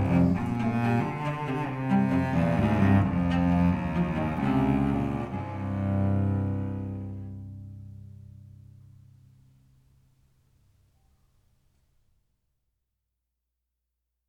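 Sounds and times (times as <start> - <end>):
cello duo: 0.0 - 9.2.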